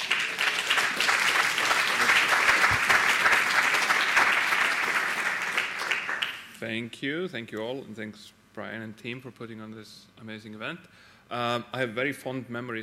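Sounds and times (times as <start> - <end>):
audience applause: 0.0 - 6.5
speech: 6.6 - 12.8.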